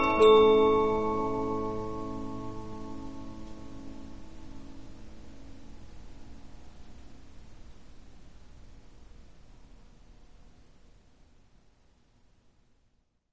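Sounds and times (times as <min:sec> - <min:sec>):
Polyphon 15-inch disc music box playing: 0:00.0 - 0:03.6.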